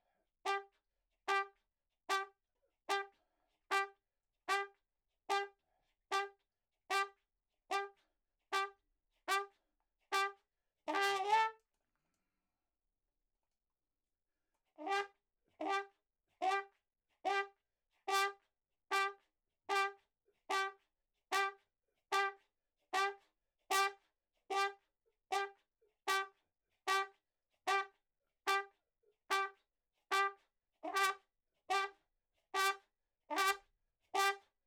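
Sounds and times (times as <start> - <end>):
ragtime trumpet in a room: 0.5 - 0.7, 1.3 - 11.6, 14.8 - 16.7, 17.3 - 17.5, 18.1 - 22.4, 23.0 - 27.9, 28.5 - 32.0, 32.6 - 34.5.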